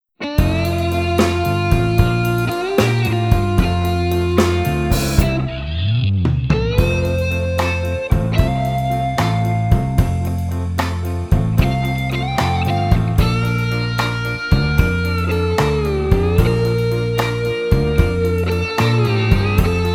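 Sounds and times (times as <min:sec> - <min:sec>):
blues music: 0:00.2 - 0:19.9.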